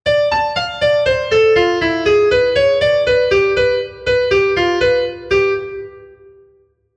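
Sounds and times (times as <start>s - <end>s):
musical phrase using tension notes: 0.1s - 6.5s.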